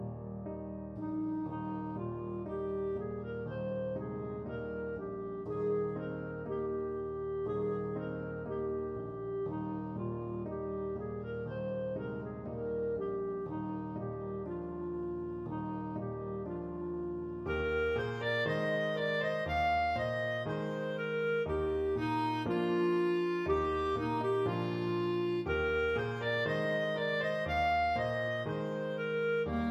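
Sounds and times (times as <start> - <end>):
Irish lullaby played on clarinet: 0.1 - 29.7.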